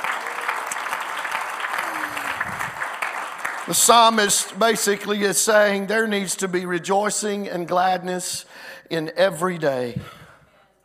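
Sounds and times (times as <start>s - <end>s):
audience clapping hands: 0.0s - 5.2s
speech: 3.7s - 10.2s.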